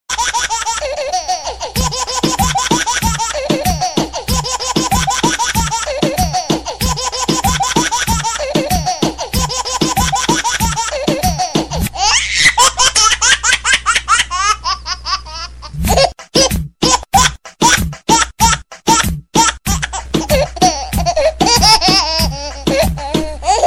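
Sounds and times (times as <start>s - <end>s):
baby laughing: 0.1s - 23.6s
disco music: 1.8s - 11.9s, 15.8s - 23.6s.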